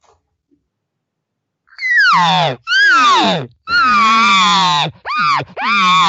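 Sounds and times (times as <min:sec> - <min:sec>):
demanding cow elk calls: 0:01.8 - 0:06.0.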